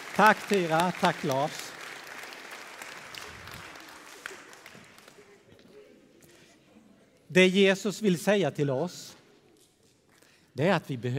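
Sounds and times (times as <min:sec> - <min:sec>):
audience applause: 0:00.0 - 0:05.5
speech: 0:00.2 - 0:01.6, 0:07.3 - 0:09.2, 0:10.6 - 0:11.1.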